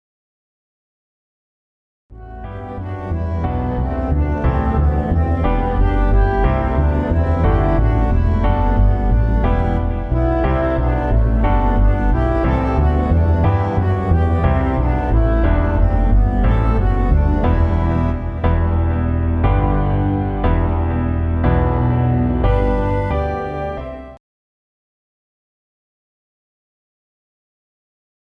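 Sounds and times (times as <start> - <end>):
waltz: 2.2 - 24.2.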